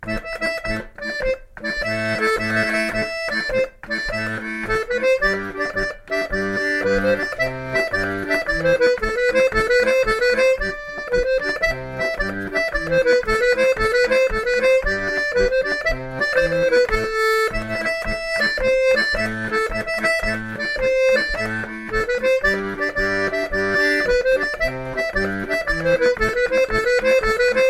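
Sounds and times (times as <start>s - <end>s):
chapelloise folk dance music: 0.0s - 27.6s.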